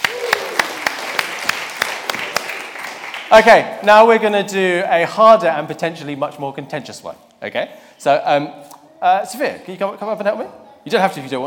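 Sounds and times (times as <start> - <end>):
audience applause: 0.0 - 3.3
speech: 3.3 - 11.4.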